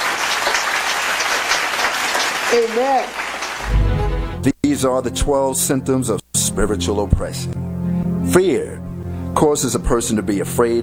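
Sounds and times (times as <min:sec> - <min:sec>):
congregation clapping during a church service: 0:00.0 - 0:04.4
speech: 0:02.5 - 0:03.8, 0:04.4 - 0:08.8, 0:09.4 - 0:10.8.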